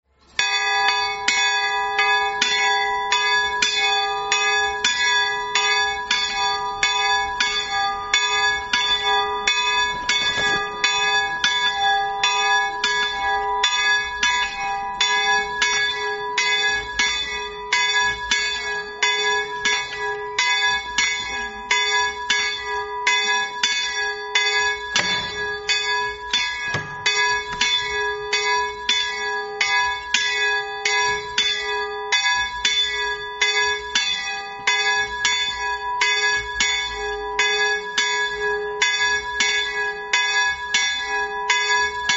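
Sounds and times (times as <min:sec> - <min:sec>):
bells ringing: 0:00.2 - 0:42.1.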